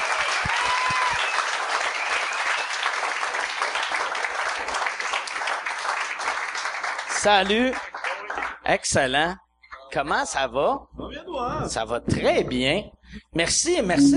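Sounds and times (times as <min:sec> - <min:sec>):
faint cheers: 0:00.0 - 0:02.1
audience applause: 0:00.0 - 0:08.6
speech: 0:07.2 - 0:07.9, 0:08.7 - 0:14.1.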